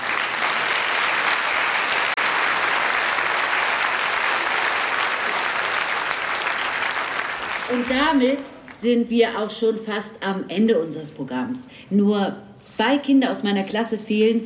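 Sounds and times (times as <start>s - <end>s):
audience applause: 0.0s - 8.8s
speech: 7.7s - 14.4s.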